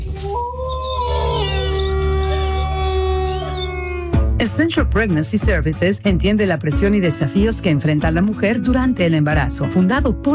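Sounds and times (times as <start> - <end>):
wolf howl station jingle sound effect: 0.0 - 4.3
speech: 4.6 - 10.3.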